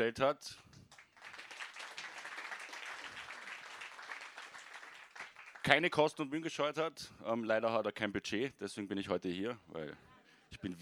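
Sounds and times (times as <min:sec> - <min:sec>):
speech: 0:00.0 - 0:00.7, 0:05.7 - 0:10.8
audience applause: 0:00.9 - 0:05.8.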